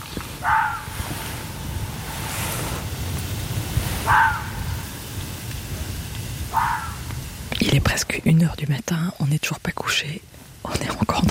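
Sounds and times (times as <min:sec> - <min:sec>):
steady wash of wind-like noise: 0:00.0 - 0:11.2
fox calling at night: 0:00.4 - 0:01.0, 0:04.0 - 0:04.6, 0:06.5 - 0:07.1
speech: 0:07.7 - 0:11.2.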